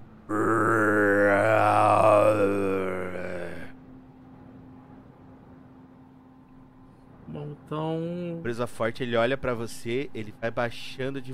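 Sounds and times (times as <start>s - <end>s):
speech: 0.3s - 0.7s, 8.5s - 11.3s
person imitating a distant creature's roar: 0.3s - 3.8s.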